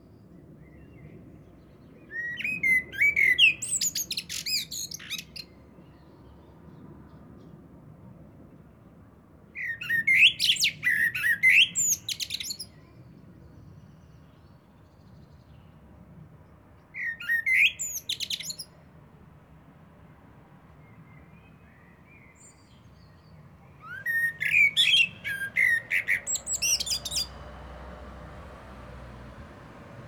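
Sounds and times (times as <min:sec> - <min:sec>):
common blackbird singing: 0:00.6 - 0:06.0, 0:09.6 - 0:13.0, 0:16.9 - 0:18.8, 0:20.8 - 0:27.5.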